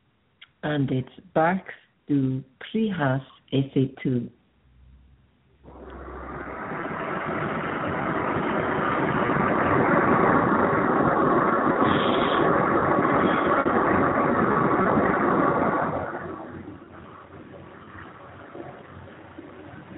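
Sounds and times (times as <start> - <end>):
speech: 0.6 - 4.4
faint high whine of aeroplane: 4.7 - 19.9
aeroplane coming in to land overhead: 5.7 - 19.9.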